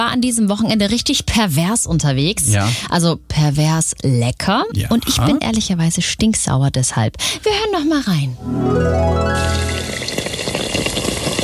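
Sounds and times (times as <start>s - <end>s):
speech: 0.1s - 10.2s
schnitzel sizzling in a pan: 9.5s - 11.4s.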